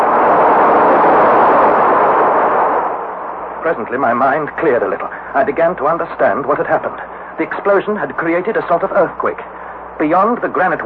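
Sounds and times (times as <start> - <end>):
roaring rushing water: 0.0 - 6.0
speech: 3.7 - 10.8.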